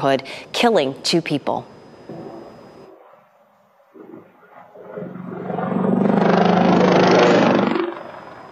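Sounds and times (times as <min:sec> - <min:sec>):
speech: 0:00.0 - 0:01.7
military helicopter engine and rotor noise: 0:04.9 - 0:08.5.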